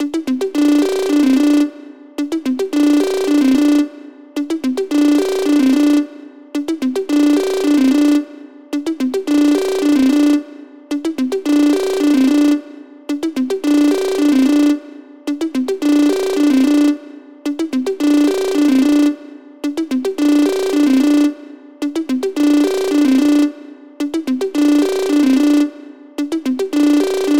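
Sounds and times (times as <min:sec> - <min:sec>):
trance ringtone: 0:00.0 - 0:27.3.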